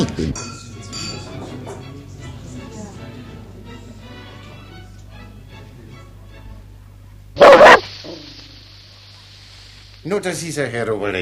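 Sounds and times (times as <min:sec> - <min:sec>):
speech: 0:00.2 - 0:00.6, 0:10.1 - 0:11.2
low murmuring bed of indistinct voices: 0:01.1 - 0:08.7
dog barking: 0:07.4 - 0:08.3.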